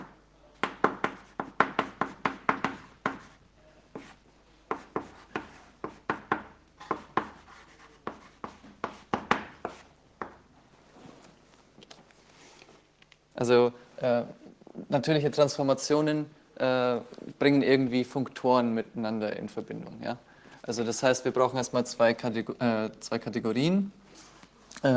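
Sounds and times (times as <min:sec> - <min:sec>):
pen scratching while handwriting a definition during a maths lecture: 0:01.0 - 0:03.4, 0:04.0 - 0:06.2, 0:06.9 - 0:09.8
speech: 0:13.4 - 0:24.0.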